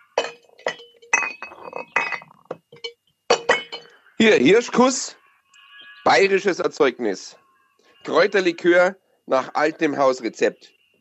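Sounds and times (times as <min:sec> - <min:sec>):
glass bottles clinking at a bar: 0:00.0 - 0:04.9
speech: 0:04.2 - 0:05.2, 0:06.1 - 0:07.4, 0:08.0 - 0:10.8.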